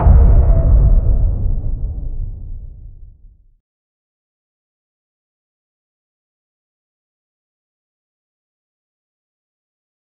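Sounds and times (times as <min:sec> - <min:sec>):
void magic dark energy impact: 0:00.0 - 0:03.4.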